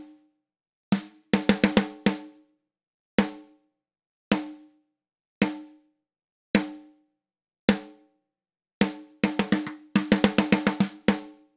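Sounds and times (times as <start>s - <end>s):
snare drum top: 0.9s - 2.3s, 8.8s - 11.4s.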